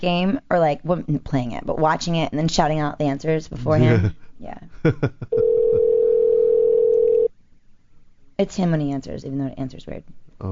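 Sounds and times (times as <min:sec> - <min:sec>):
speech: 0:00.0 - 0:05.6, 0:08.4 - 0:10.5
telephone dial tone: 0:05.4 - 0:07.3.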